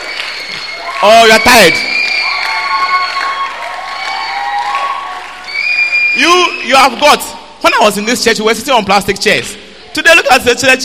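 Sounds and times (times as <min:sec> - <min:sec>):
audience applause: 0:00.0 - 0:06.2
audience cheering: 0:00.0 - 0:07.2
speech: 0:01.0 - 0:01.9, 0:06.2 - 0:10.8.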